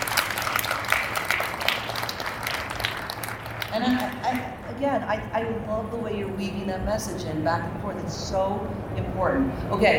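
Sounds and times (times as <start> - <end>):
audience applause: 0.0 - 4.4
speech: 3.8 - 9.9.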